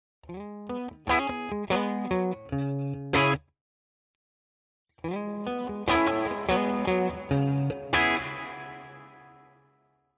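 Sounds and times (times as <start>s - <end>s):
guitar through Walrus Fundamental hall reverb pedal: 0.3s - 3.4s, 5.0s - 9.8s.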